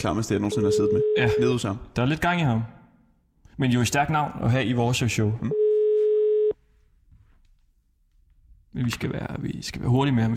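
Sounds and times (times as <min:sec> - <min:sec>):
speech: 0:00.0 - 0:02.8, 0:03.6 - 0:05.6, 0:08.7 - 0:10.3
telephone ringback tone heard while calling: 0:00.5 - 0:01.5, 0:05.5 - 0:06.6.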